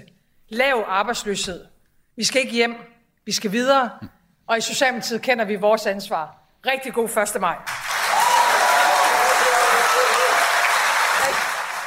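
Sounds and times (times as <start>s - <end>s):
speech: 0.5s - 7.8s
applause: 7.7s - 11.8s.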